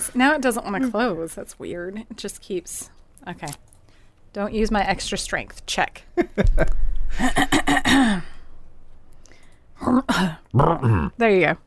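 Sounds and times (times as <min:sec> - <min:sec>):
speech: 0:00.0 - 0:03.7, 0:04.3 - 0:08.3, 0:09.8 - 0:11.6
person clearing throat: 0:09.8 - 0:11.1.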